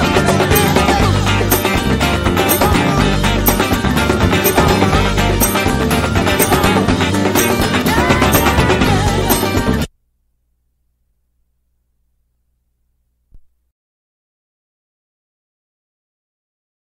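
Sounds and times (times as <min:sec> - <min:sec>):
instrumental music: 0:00.0 - 0:09.9.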